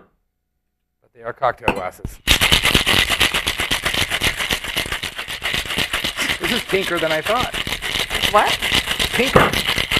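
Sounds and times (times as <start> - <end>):
speech: 1.2 - 3.1, 6.4 - 9.7
ice rattling inside a cocktail shaker being shaken: 2.3 - 9.9.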